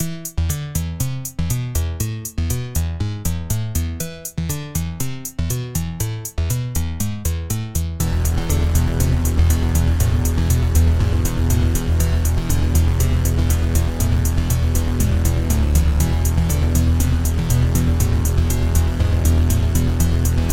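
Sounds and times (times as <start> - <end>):
hard bass music: 0.0 - 20.5.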